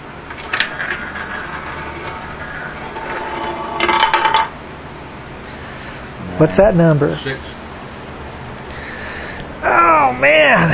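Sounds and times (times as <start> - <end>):
roulette wheel spinning: 0.2 - 4.6
speech: 6.4 - 7.6, 10.2 - 10.7.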